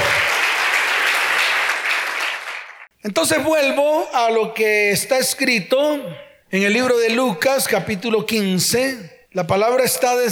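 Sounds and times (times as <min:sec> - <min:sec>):
audience applause: 0:00.0 - 0:02.9
speech: 0:03.0 - 0:10.3.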